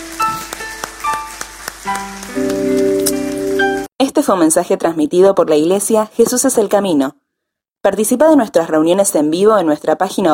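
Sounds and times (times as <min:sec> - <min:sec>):
audience applause: 0:00.0 - 0:03.9
speech: 0:04.0 - 0:07.2, 0:07.8 - 0:10.3.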